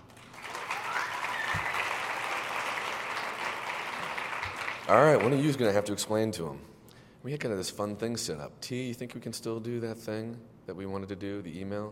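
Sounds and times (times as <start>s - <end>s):
crowd applause: 0.0s - 5.6s
speech: 4.9s - 11.9s.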